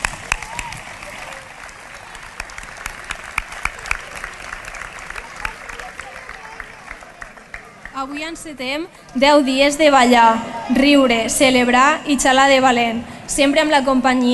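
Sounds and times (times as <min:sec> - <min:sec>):
crowd clapping: 0:00.0 - 0:08.2
speech: 0:08.0 - 0:14.3.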